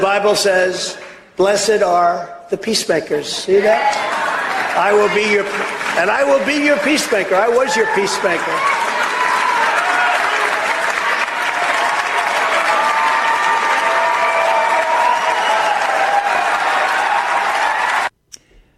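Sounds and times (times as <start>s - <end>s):
speech: 0.0s - 8.8s
faint cheering: 3.5s - 18.1s
large audience applause: 3.5s - 18.1s.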